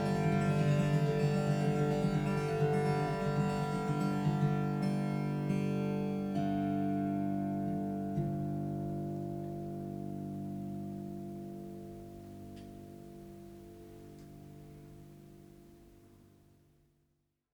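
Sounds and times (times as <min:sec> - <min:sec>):
bass-body tambura being tuned: 0:00.0 - 0:11.1.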